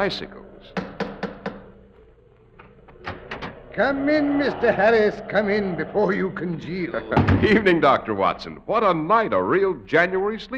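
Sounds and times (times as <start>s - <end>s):
speech: 0.0s - 0.8s, 3.8s - 10.5s
door knocker knocking on front door: 0.8s - 1.7s.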